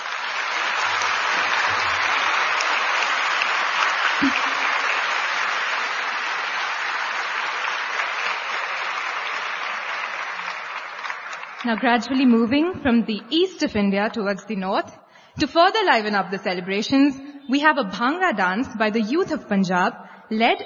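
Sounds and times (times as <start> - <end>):
audience applause at a cultural celebration: 0.0 - 12.2
speech: 11.6 - 20.6.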